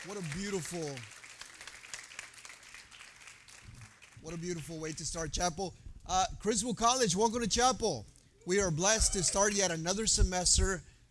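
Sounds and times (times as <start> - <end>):
speech: 0.0 - 1.2, 4.2 - 10.9
audience applause: 0.0 - 4.3.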